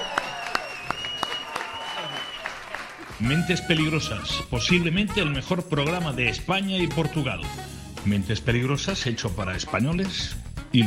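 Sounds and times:
audience applauding: 0.0 - 3.5
speech: 3.2 - 10.8.

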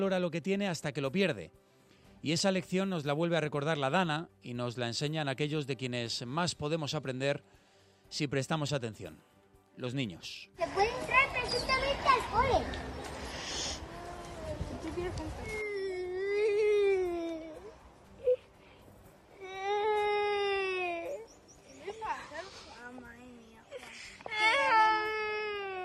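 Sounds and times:
speech: 0.0 - 12.9, 15.0 - 15.6
baby crying: 15.4 - 18.5, 19.4 - 21.3, 24.2 - 25.8.

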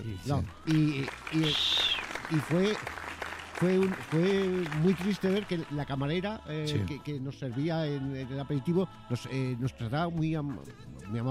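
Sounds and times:
speech: 0.0 - 3.0, 3.6 - 11.2
applause: 0.0 - 6.2.

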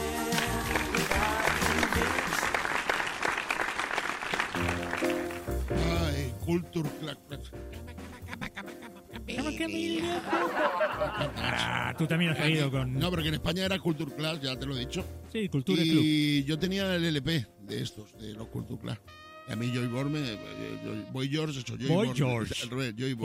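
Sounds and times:
audience applause: 0.2 - 5.8
speech: 6.5 - 7.9, 9.4 - 23.2
laughter: 7.7 - 12.7.

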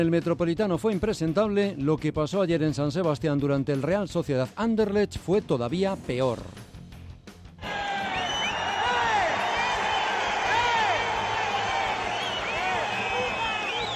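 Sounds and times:
speech: 0.0 - 6.7
Real Sociedad football fans shouting in indignation: 7.6 - 13.9
whistles: 7.7 - 10.4, 11.4 - 13.9.

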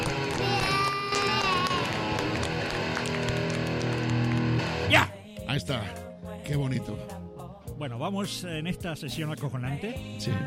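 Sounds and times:
cheering, shouts and whoops: 0.0 - 3.2
loud crowd applauding: 0.0 - 4.9
speech: 5.6 - 7.2, 7.8 - 10.4.

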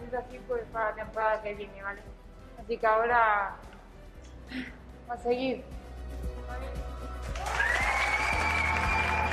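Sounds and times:
speech: 0.1 - 3.7, 4.5 - 7.7
applause from a team locker room: 7.2 - 9.3.

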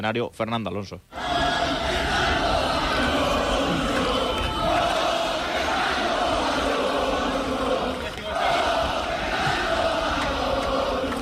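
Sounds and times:
speech: 0.0 - 1.4
crowd at the Spanish Grand Prix at Montmeló cheering Fernando Alonso: 1.2 - 11.1.

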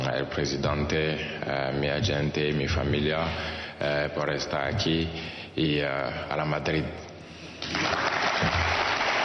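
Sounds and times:
speech: 0.2 - 7.0
ovation for a footballer at his official presentation: 7.6 - 9.2.

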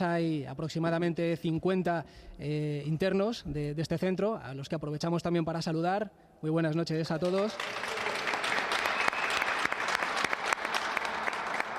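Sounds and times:
speech: 0.0 - 7.9
applause from audience in sports hall: 7.2 - 11.7.

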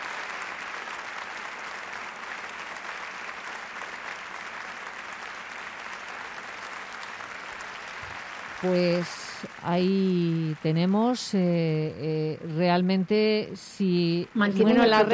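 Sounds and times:
theatre audience applause at Teatro Campoamor: 0.0 - 11.5
speech: 8.6 - 15.1.

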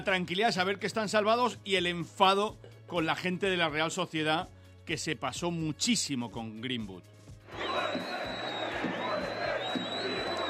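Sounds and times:
speech: 0.0 - 8.1
football fans shouting chants in stadium stand: 7.5 - 10.4.

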